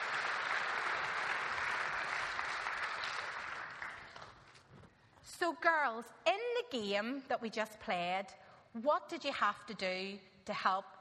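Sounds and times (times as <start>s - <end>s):
applause: 0.0s - 4.7s
speech: 5.4s - 10.9s.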